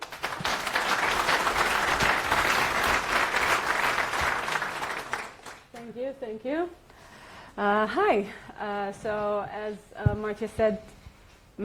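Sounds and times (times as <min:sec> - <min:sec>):
audience applause: 0:00.0 - 0:05.7
speech: 0:07.6 - 0:11.0.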